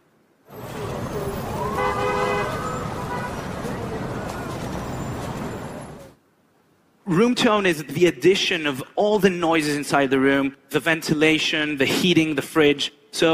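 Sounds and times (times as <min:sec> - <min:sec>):
Times Square traffic roar: 0:00.4 - 0:06.2
car horns tooting in Times Square: 0:00.5 - 0:06.1
crowd murmuring: 0:00.6 - 0:06.2
speech: 0:07.1 - 0:13.3.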